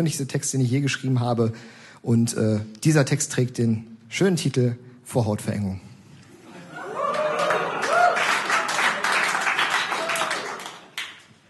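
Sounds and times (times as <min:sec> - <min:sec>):
speech: 0:00.0 - 0:05.9
audience laughter: 0:06.4 - 0:09.2
audience applause: 0:06.9 - 0:11.3.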